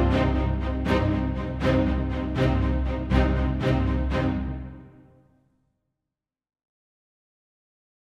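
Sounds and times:
orchestra: 0:00.0 - 0:05.2.

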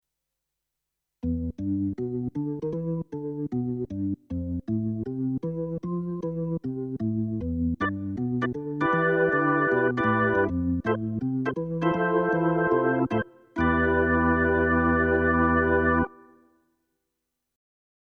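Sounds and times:
S51 organ: 0:01.2 - 0:16.4.

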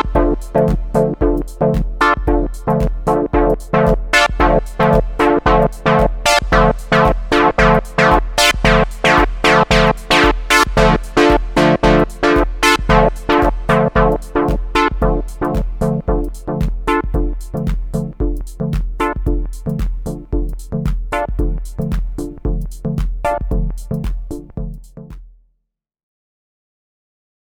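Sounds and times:
hard-synced synthesizer with envelope and dub delay: 0:00.0 - 0:25.2.

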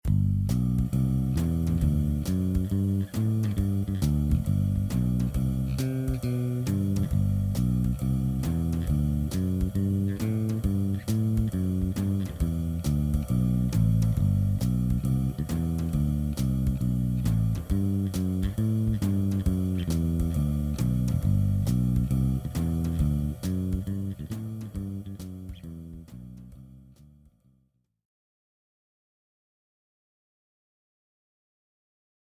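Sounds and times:
walking bass line: 0:00.0 - 0:27.4.

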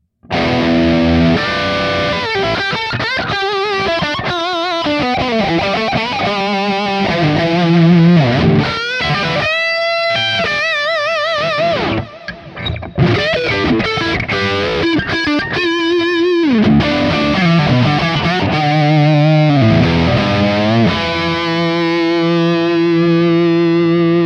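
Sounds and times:
Hagstrom Ultra Max electric guitar high-gain lead, bridge and neck pickups: 0:00.0 - 0:24.2.

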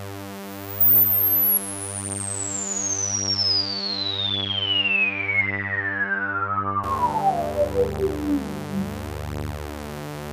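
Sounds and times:
PPG Wave synthesizer filter sweep: 0:00.6 - 0:10.2.

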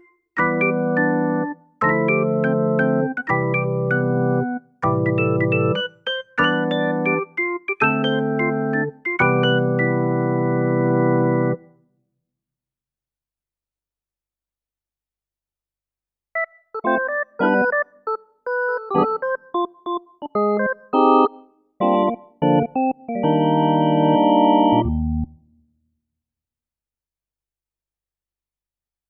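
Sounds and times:
organ: 0:00.4 - 0:11.7, 0:16.8 - 0:25.3.

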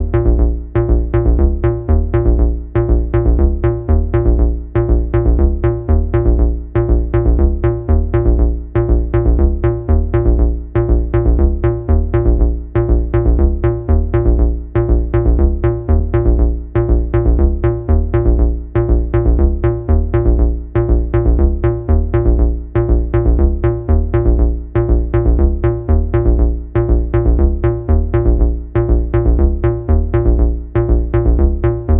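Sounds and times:
analog bass synth with EQ: 0:00.0 - 0:31.9.

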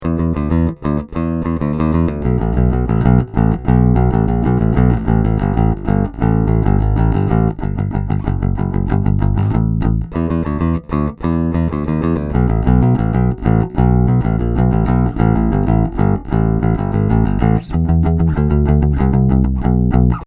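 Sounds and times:
Music Man Caprice bass guitar played with a plectrum: 0:00.0 - 0:20.2.

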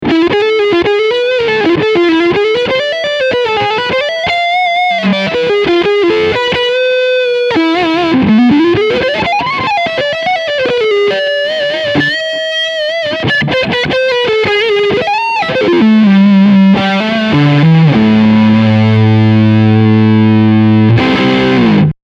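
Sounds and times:
lead guitar on front pickup: 0:00.0 - 0:22.0.

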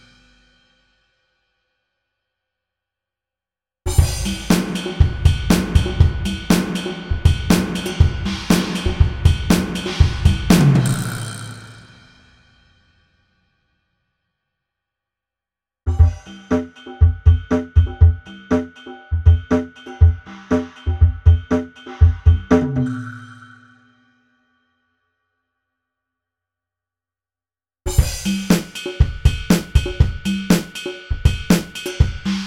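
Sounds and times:
drum: 0:03.9 - 0:12.3, 0:15.9 - 0:23.0, 0:27.9 - 0:32.4.

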